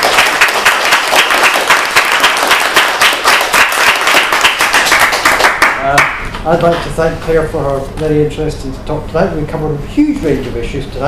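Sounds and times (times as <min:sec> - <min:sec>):
audience applause: 0:00.0 - 0:06.1
speech: 0:06.4 - 0:11.0.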